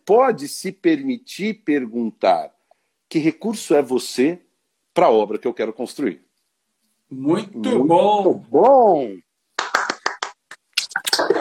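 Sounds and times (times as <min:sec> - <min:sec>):
speech: 0:00.1 - 0:04.4, 0:05.0 - 0:06.2, 0:07.1 - 0:09.2
people applauding: 0:09.6 - 0:10.4.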